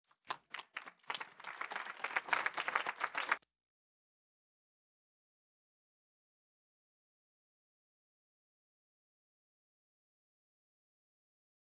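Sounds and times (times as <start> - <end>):
audience applauding: 0.1 - 3.4.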